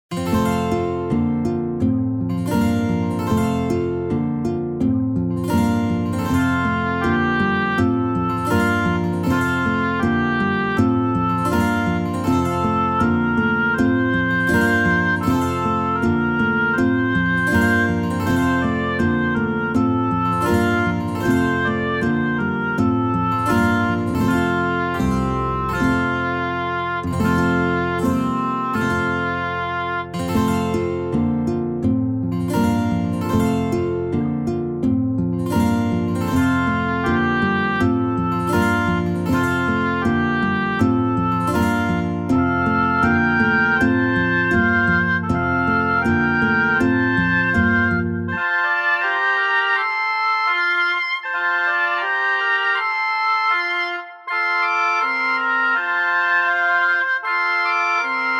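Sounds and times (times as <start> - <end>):
instrumental music: 0.0 - 58.3.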